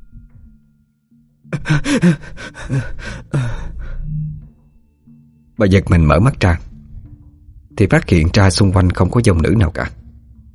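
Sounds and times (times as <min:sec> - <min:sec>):
speech: 0:01.5 - 0:03.5, 0:05.6 - 0:06.7, 0:07.8 - 0:10.0
woman gasping and choking for breath: 0:01.6 - 0:03.4.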